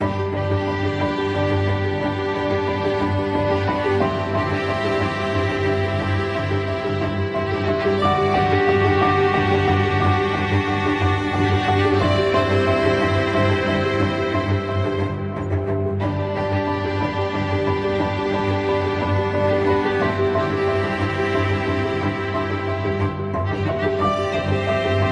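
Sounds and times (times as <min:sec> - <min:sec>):
ambient music: 0:00.0 - 0:25.1.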